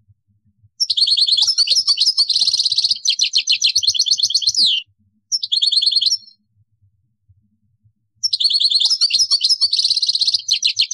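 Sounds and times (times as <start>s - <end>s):
European goldfinch song: 0.8s - 6.3s, 8.2s - 10.9s.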